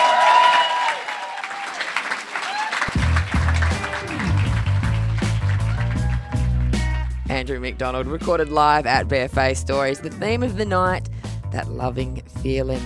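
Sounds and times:
audience applause: 0:00.0 - 0:07.0
speech: 0:07.4 - 0:12.8.

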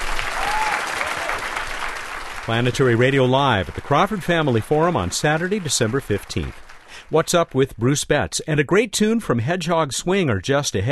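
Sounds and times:
audience applause for the guests: 0:00.0 - 0:07.5
speech: 0:02.5 - 0:10.9.

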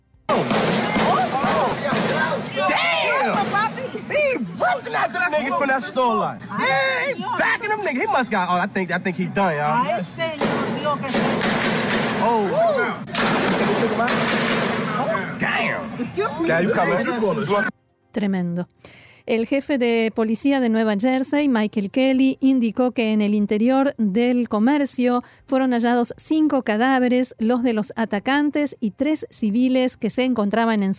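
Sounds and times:
intense gunfire: 0:00.3 - 0:04.1, 0:10.4 - 0:15.4
panicked crowd shouting and screaming: 0:00.3 - 0:05.7, 0:06.4 - 0:07.7, 0:12.2 - 0:13.2
speech: 0:04.7 - 0:10.3, 0:10.9 - 0:11.6, 0:12.2 - 0:13.1, 0:13.8 - 0:14.4, 0:15.6 - 0:30.9.

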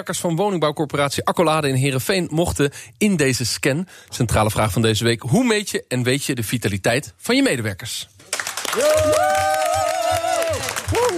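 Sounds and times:
speech: 0:00.0 - 0:09.5
staff applause: 0:08.2 - 0:11.1.

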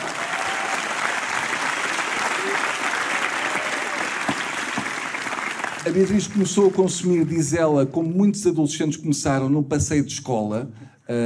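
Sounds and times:
audience applause: 0:00.0 - 0:07.3
speech: 0:05.8 - 0:11.2.

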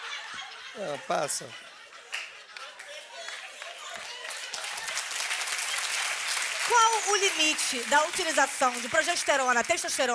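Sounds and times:
laughter: 0:00.0 - 0:05.2
speech: 0:00.7 - 0:01.7, 0:06.7 - 0:10.1
applause: 0:02.1 - 0:10.1.

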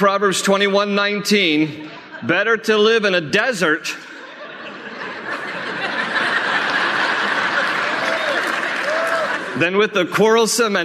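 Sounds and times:
speech: 0:00.0 - 0:04.1, 0:09.6 - 0:10.8
laughter: 0:01.8 - 0:03.1, 0:03.7 - 0:09.7
audience clapping during a talk on a Bible verse: 0:06.2 - 0:09.6.

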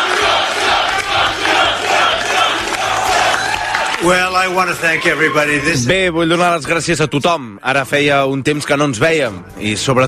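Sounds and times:
crowd cheering at victory rally: 0:00.0 - 0:06.6
speech: 0:04.0 - 0:10.0.

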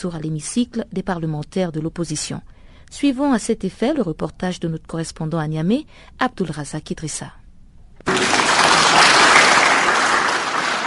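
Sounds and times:
speech: 0:00.0 - 0:07.4
thunderous applause from parliament deputies: 0:08.1 - 0:10.8.

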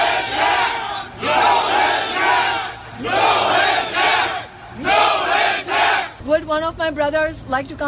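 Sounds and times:
construction workers chanting loudly to drown out a speaker: 0:00.0 - 0:06.2
speech: 0:06.8 - 0:07.8.

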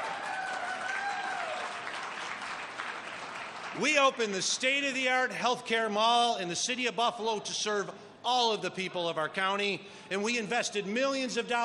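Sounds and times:
audience applause: 0:00.0 - 0:04.0
speech: 0:03.8 - 0:11.6.

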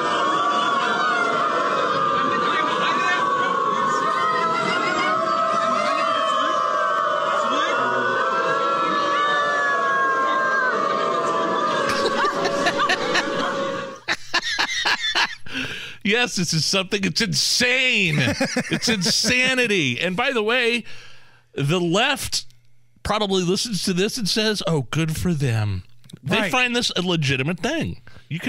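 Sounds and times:
crowd of people howling and barking like dogs in Berlin: 0:00.0 - 0:15.3
laughter: 0:10.9 - 0:16.0, 0:17.8 - 0:20.0
speech: 0:16.1 - 0:22.5, 0:23.1 - 0:28.4.

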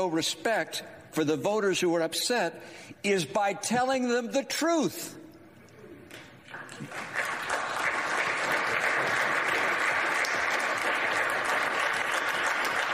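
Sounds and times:
speech: 0:00.0 - 0:05.2
audience applause: 0:06.5 - 0:12.9.

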